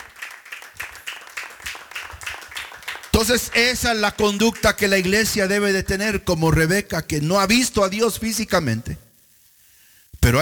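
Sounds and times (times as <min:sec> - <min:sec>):
church congregation clapping in praise at a women's service: 0:00.0 - 0:06.1
speech: 0:03.2 - 0:09.0.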